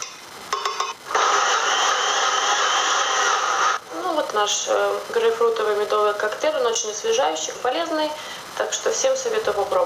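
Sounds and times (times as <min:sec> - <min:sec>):
blender blending fruit pulp with honey: 0:00.7 - 0:03.8
speech: 0:04.4 - 0:09.8.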